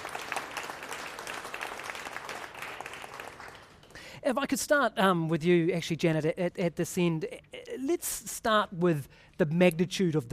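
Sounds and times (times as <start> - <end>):
audience applause for panelists: 0.0 - 4.0
speech: 4.2 - 10.3.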